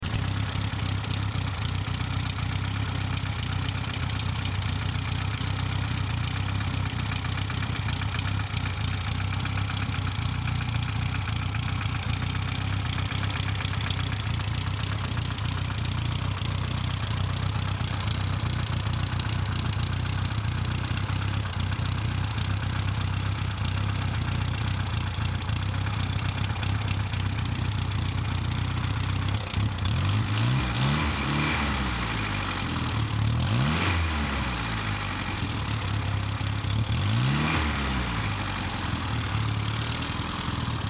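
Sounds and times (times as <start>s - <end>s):
Renault 4CV engine running: 0.0s - 40.8s.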